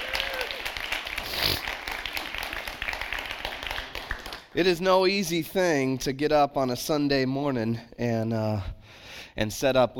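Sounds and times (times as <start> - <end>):
audience applause: 0.0 - 4.6
speech: 4.6 - 8.8, 9.4 - 9.9.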